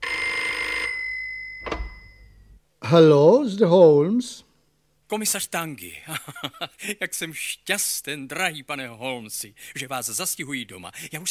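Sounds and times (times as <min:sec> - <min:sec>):
telephone bell ringing: 0:00.0 - 0:02.5
speech: 0:02.9 - 0:04.5, 0:05.1 - 0:11.2.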